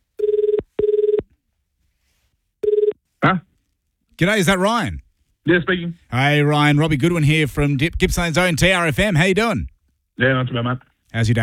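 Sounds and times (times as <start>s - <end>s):
telephone ringing: 0.2s - 1.2s, 2.6s - 3.0s
speech: 3.3s - 3.5s, 4.2s - 11.4s.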